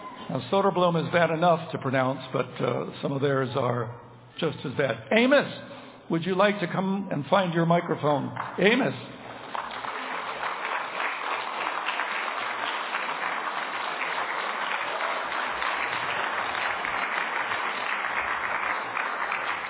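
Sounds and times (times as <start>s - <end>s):
speech: 0.3s - 9.1s
audience clapping: 8.2s - 19.6s.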